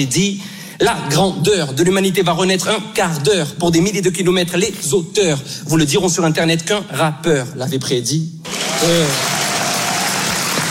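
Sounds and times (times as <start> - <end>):
speech: 0.0 - 9.4
audience standing ovation applause: 8.5 - 10.7.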